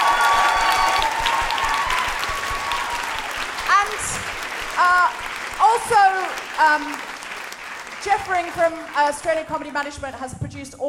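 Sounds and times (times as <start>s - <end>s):
sharp rising whoops: 0.0s - 3.5s
theatre audience applause: 0.0s - 9.9s
speech: 6.6s - 7.1s, 8.0s - 10.8s.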